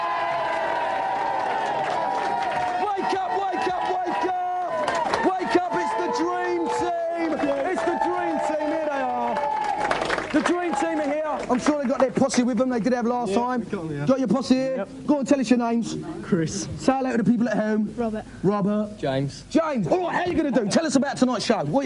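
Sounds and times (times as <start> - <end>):
audience cheering for team: 0.0 - 12.0
speech: 11.5 - 21.8.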